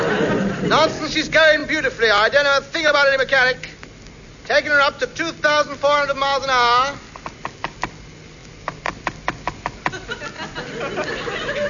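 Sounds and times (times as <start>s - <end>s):
laughter: 0.0s - 1.1s, 9.8s - 11.6s
speech: 0.6s - 3.7s, 4.5s - 7.0s, 10.8s - 11.5s
knocking on aeroplane windscreen: 8.7s - 10.0s.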